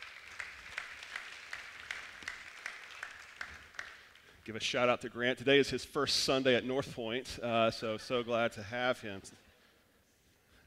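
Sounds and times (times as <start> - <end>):
faint audience applause: 0.0 - 4.5
speech: 4.5 - 9.4.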